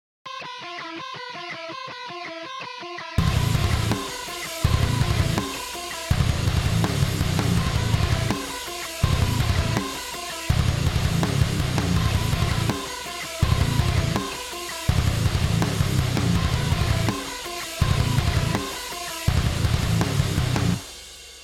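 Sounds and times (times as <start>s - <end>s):
knocked lead synth: 3.2s - 20.6s.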